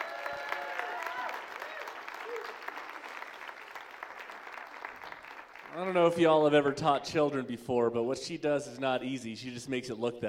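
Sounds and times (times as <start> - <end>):
crowd applauding: 0.0 - 6.4
speech: 5.8 - 10.2.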